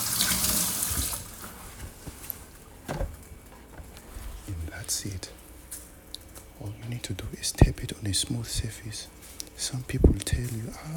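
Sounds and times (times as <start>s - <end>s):
tap water running as hands are washed: 0.0s - 2.0s
speech: 4.9s - 5.4s, 6.6s - 10.9s.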